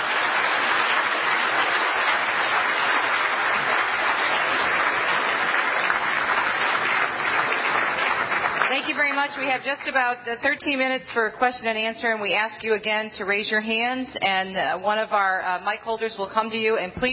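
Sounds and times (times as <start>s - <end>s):
audience applause: 0.0s - 9.9s
speech: 8.9s - 17.1s.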